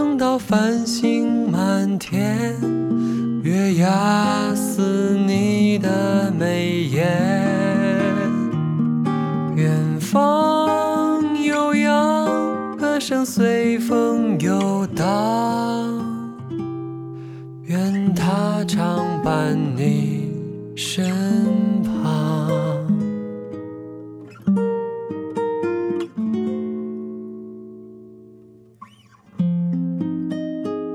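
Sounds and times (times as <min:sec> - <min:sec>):
person singing: 0:00.0 - 0:08.6, 0:09.5 - 0:16.5, 0:17.6 - 0:23.0
guitar: 0:00.0 - 0:30.9.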